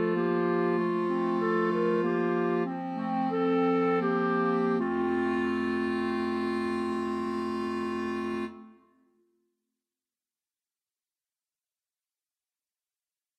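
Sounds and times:
clarinet quartet playing: 0.0 - 8.8.

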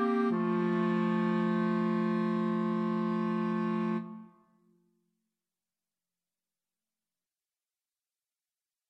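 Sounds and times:
clarinet trio playing: 0.0 - 4.3.

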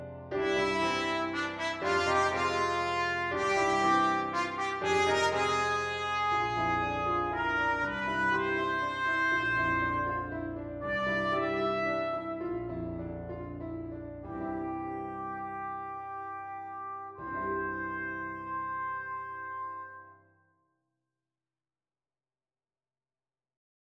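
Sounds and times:
trumpet, flugelhorn or cornet playing: 0.3 - 12.7, 14.3 - 20.2.

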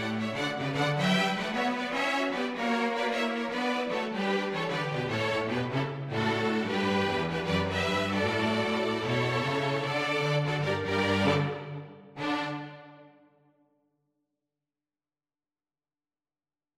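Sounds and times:
string jazz: 0.0 - 12.9.

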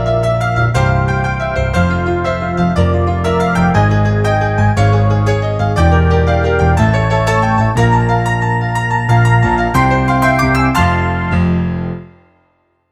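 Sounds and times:
piano solo: 0.0 - 12.7.

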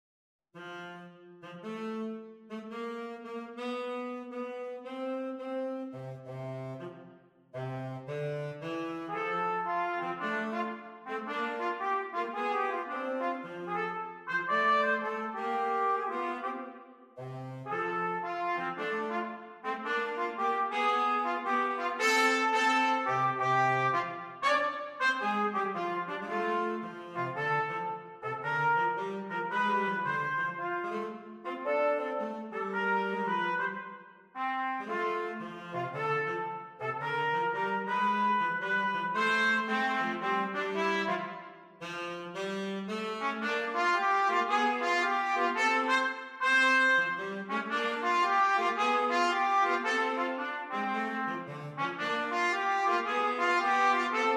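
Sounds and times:
tenor saxophone in a jazz duet: 0.6 - 54.3
trumpet in a jazz duet: 0.6 - 54.3.

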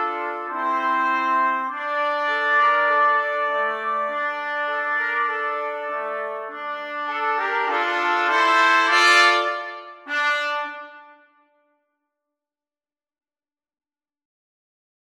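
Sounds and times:
trumpet trio: 0.0 - 11.5.

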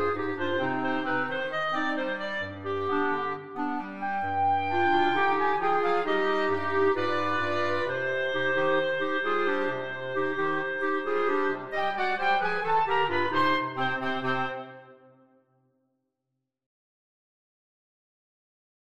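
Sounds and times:
clarinet quartet playing: 0.0 - 15.1.

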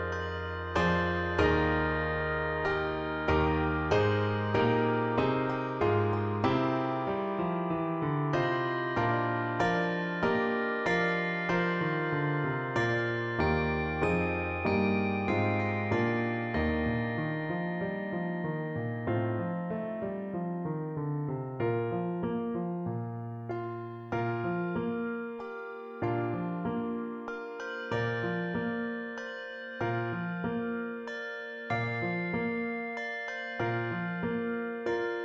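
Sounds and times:
two-octave handbells: 0.0 - 7.4, 8.4 - 18.8, 27.3 - 35.2
piano accompaniment: 0.0 - 35.2.

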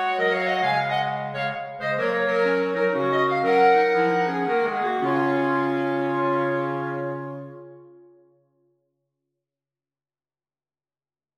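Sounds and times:
jazz carol for clarinet quartet: 0.0 - 8.1.

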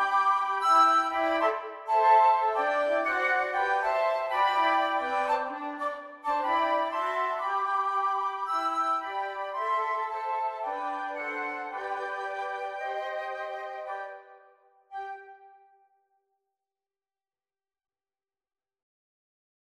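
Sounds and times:
flute quartet playing: 0.0 - 15.6.

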